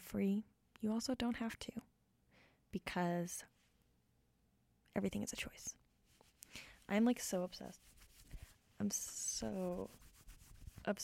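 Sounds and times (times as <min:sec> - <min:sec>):
speech: 0:00.1 - 0:01.9, 0:02.7 - 0:03.5, 0:05.0 - 0:05.8, 0:06.5 - 0:08.0, 0:08.8 - 0:10.0, 0:10.8 - 0:11.0
rubbing a denim shirt: 0:06.1 - 0:11.0.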